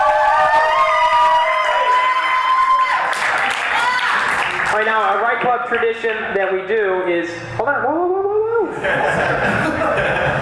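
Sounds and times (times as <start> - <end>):
audience applause: 0.0 - 5.2
speech: 5.4 - 8.2, 8.8 - 10.3
laughter: 8.6 - 10.3.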